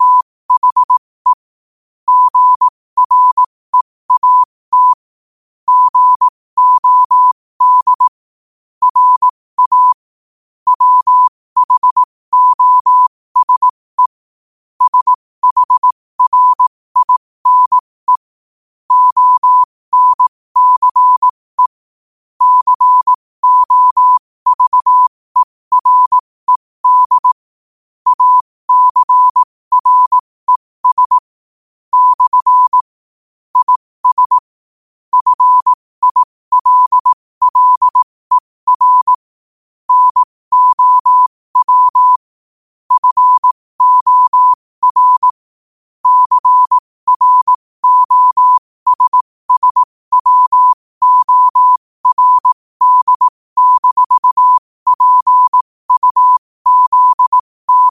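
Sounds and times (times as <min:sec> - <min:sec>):
morse code at 5 wpm: 0:00.0 - 0:01.5, 0:02.1 - 0:05.1, 0:05.7 - 0:08.2, 0:08.8 - 0:10.1, 0:10.7 - 0:14.2, 0:14.8 - 0:18.3, 0:18.9 - 0:21.8, 0:22.4 - 0:27.4, 0:28.0 - 0:31.3, 0:31.9 - 0:34.5, 0:35.1 - 0:39.3, 0:39.9 - 0:42.3, 0:42.9 - 0:45.4, 0:46.0 - 0:57.8.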